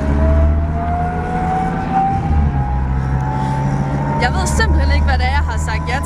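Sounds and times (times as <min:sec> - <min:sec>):
armored personnel carrier interior engine noise: 0:00.0 - 0:06.0
speech: 0:04.2 - 0:06.0.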